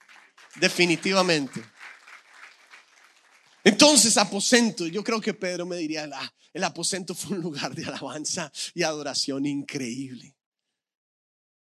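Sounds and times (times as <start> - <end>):
audience applause: 0.0 - 5.6
laughter: 0.6 - 1.8, 3.7 - 5.8, 6.6 - 9.1
speech: 0.6 - 1.8, 3.8 - 10.4.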